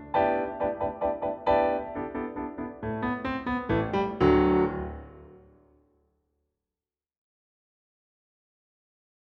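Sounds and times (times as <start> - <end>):
instrumental accompaniment: 0.1 - 5.6.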